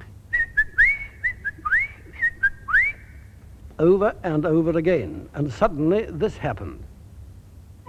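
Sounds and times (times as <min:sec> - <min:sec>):
person whistling an imitation of a blackbird's call: 0:00.4 - 0:03.3
speech: 0:03.8 - 0:06.9.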